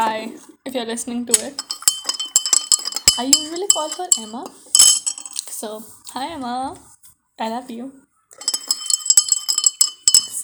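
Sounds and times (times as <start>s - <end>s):
speech: 0.1s - 1.9s, 3.2s - 4.8s, 5.6s - 8.1s
spoon clinking against a coffee cup: 1.4s - 5.5s, 8.4s - 10.4s.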